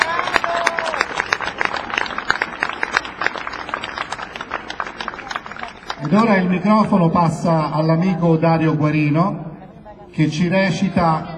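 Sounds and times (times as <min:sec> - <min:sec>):
audience applause: 0:00.0 - 0:06.6
speech: 0:06.1 - 0:09.4, 0:10.2 - 0:11.3.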